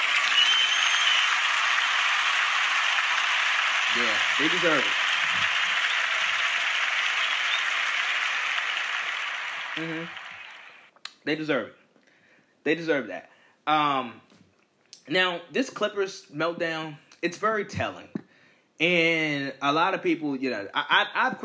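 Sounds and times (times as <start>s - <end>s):
round of applause: 0.0s - 10.9s
speech: 3.9s - 5.6s, 9.8s - 10.2s, 11.2s - 11.8s, 12.6s - 14.3s, 15.1s - 18.2s, 18.8s - 21.4s.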